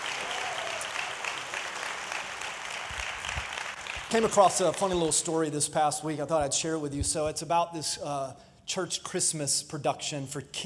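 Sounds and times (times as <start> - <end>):
audience clapping: 0.0 - 5.3
speech: 4.1 - 10.6.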